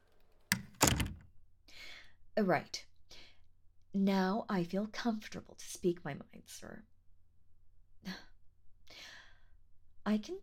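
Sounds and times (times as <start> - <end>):
door closing: 0.5 - 1.3
speech: 2.4 - 2.8, 3.9 - 6.9, 8.0 - 8.3, 10.1 - 10.4.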